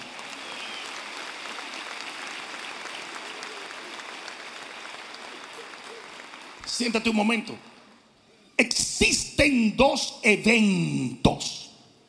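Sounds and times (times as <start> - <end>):
audience clapping: 0.0 - 7.6
speech: 6.8 - 7.7, 8.6 - 11.6.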